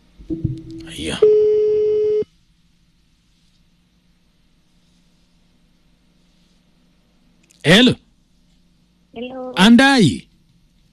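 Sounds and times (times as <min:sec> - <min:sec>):
speech: 0:00.3 - 0:01.4, 0:07.7 - 0:08.0, 0:09.2 - 0:10.3
telephone ringing tone on a call to a radio listener: 0:01.2 - 0:02.2.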